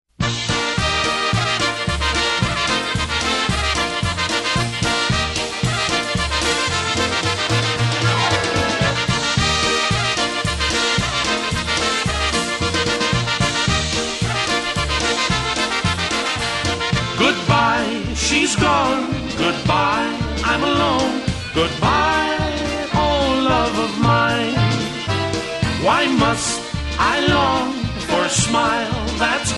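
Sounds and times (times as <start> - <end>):
polka music: 0.1 - 29.5.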